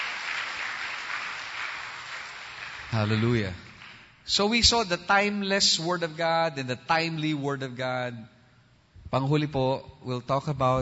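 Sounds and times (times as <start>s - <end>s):
church congregation applauding in praise during a sermon: 0.0s - 4.5s
speech: 2.9s - 3.7s, 4.3s - 8.4s, 9.1s - 10.8s.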